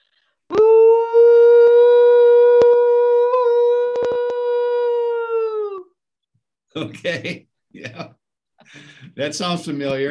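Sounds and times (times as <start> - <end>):
person whooping loudly imitating a Sasquatch call: 0.5 - 6.0
speech: 6.8 - 10.0.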